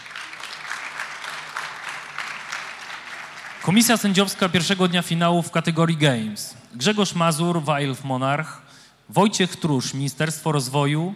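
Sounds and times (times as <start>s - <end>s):
audience applause: 0.0s - 4.8s
speech: 3.6s - 11.1s.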